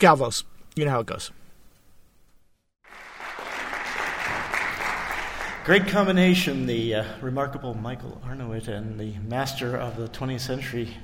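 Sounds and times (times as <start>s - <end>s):
speech: 0.0s - 1.4s, 5.6s - 11.0s
audience applause after piano performance: 2.9s - 6.1s.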